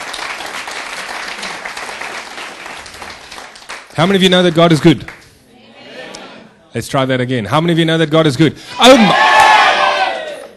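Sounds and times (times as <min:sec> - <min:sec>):
church congregation applauding after worship: 0:00.0 - 0:05.2
speech: 0:04.0 - 0:05.2, 0:06.8 - 0:09.3.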